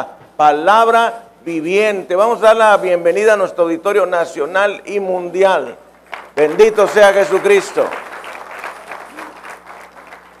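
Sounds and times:
speech: 0:00.0 - 0:05.8, 0:06.4 - 0:08.1
audience applause: 0:06.1 - 0:10.3.

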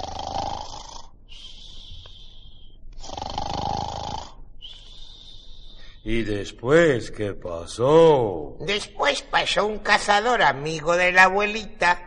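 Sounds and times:
wolf snoring while asleep: 0:00.0 - 0:02.3, 0:03.0 - 0:06.0
speech: 0:06.0 - 0:12.0.

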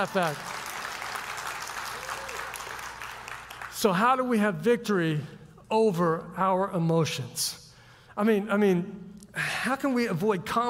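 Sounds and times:
speech: 0:00.0 - 0:00.5, 0:03.8 - 0:07.6, 0:08.2 - 0:10.6
audience clapping: 0:00.0 - 0:04.0.

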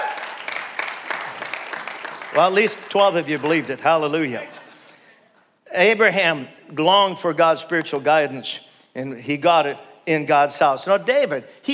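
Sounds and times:
audience clapping: 0:00.0 - 0:04.2
speech: 0:02.4 - 0:04.6, 0:05.7 - 0:11.7.

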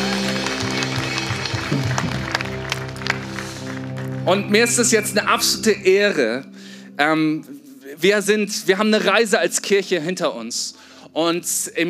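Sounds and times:
audience applause for the band: 0:00.0 - 0:04.9
speech: 0:04.3 - 0:11.8.

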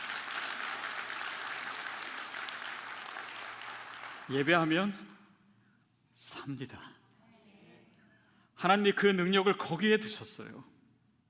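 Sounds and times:
crowd clapping: 0:00.0 - 0:05.2
speech: 0:04.3 - 0:05.2, 0:06.2 - 0:07.0, 0:08.6 - 0:10.7.

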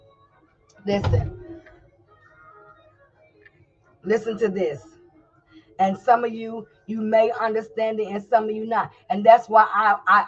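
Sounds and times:
speech: 0:00.8 - 0:01.4, 0:04.0 - 0:04.9, 0:05.8 - 0:10.2
door shutting: 0:00.9 - 0:01.6.

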